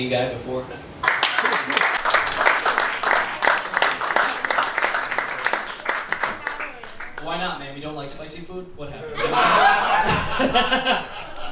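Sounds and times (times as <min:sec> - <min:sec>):
speech: 0:00.0 - 0:01.0, 0:07.2 - 0:11.2
audience applause: 0:01.0 - 0:07.4
laughter: 0:09.0 - 0:11.5.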